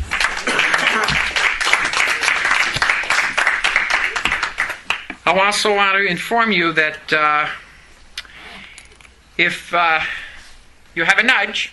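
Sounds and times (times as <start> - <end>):
audience applause: 0.0 - 5.2
speech: 5.3 - 7.6, 9.4 - 10.2, 11.0 - 11.7.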